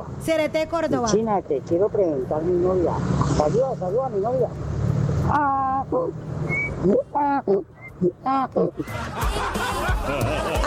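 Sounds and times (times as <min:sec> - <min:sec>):
speech: 0:00.2 - 0:10.6
person imitating a donkey's bray: 0:05.3 - 0:06.2, 0:06.8 - 0:08.9
snickering laughter: 0:08.0 - 0:10.6.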